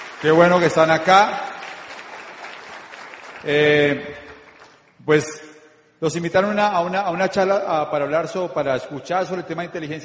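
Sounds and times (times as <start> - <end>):
audience applause: 0.0 - 4.8
speech: 0.2 - 1.5, 3.4 - 4.3, 5.0 - 10.0.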